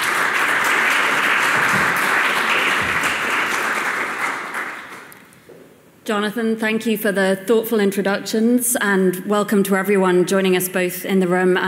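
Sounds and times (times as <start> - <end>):
audience applause welcoming speakers at a Federalist Society evening panel: 0.0 - 5.2
speech: 6.1 - 11.6.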